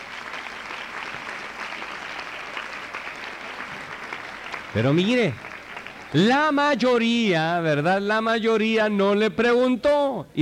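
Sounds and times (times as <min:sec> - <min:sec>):
audience applause: 0:00.0 - 0:06.8
speech: 0:04.7 - 0:05.5, 0:06.1 - 0:10.3.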